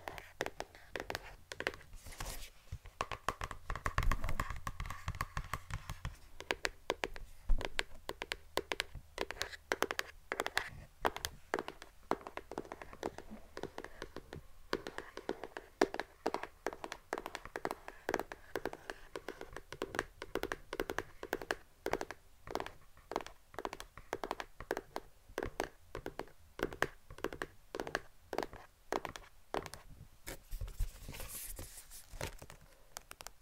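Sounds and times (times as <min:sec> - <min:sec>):
fingertips tapping: 0:00.0 - 0:29.9
faint scratching: 0:30.3 - 0:32.5.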